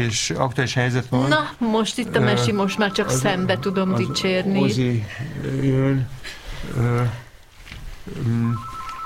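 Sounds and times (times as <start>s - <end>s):
speech: 0.0s - 7.2s, 8.0s - 8.8s
telephone ringing with an incoming listener call: 2.2s - 5.1s, 8.4s - 9.0s.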